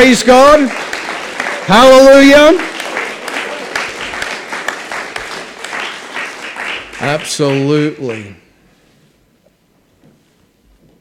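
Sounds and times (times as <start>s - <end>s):
speech: 0.0s - 0.9s, 1.6s - 2.7s, 7.0s - 8.4s
audience applause: 0.0s - 8.4s.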